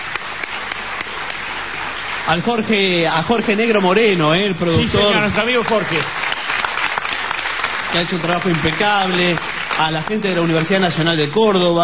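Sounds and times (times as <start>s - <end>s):
audience applause at a book fair in Las Varillas: 0.0s - 11.8s
speech: 2.3s - 6.2s, 7.9s - 11.8s.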